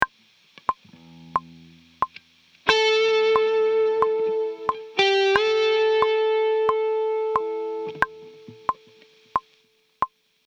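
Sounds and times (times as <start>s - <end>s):
musical lick: 0.7s - 9.1s.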